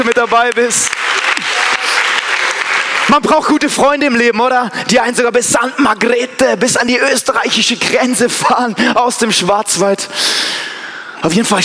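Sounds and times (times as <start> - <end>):
speech: 0.0 - 1.9, 3.1 - 11.6
audience applause: 0.0 - 4.1.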